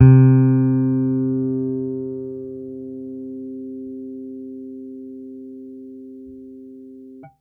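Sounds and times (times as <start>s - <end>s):
soft electric string bass note C3: 0.0s - 4.0s.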